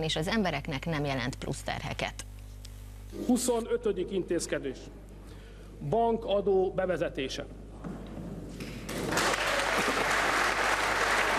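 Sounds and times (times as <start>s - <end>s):
speech: 0.0s - 2.3s, 3.1s - 5.0s, 5.8s - 8.0s
applause in parliament: 8.8s - 11.3s.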